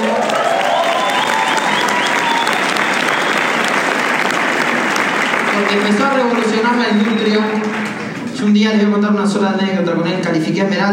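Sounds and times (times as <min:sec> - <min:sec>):
loud audience applause: 0:00.0 - 0:08.4
faint whistles: 0:00.6 - 0:03.8
speech: 0:05.7 - 0:07.8, 0:08.4 - 0:10.9.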